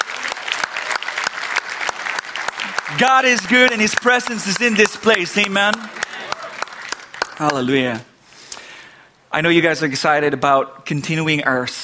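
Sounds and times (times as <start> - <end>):
audience clapping in praise: 0.0 - 8.1
speech: 3.0 - 6.0, 7.4 - 8.1, 9.3 - 11.8.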